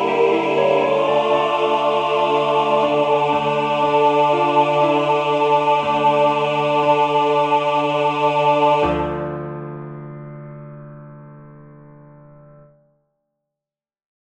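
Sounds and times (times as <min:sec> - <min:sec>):
SATB choir singing vocalise: 0:00.0 - 0:09.3
piano: 0:00.0 - 0:12.9.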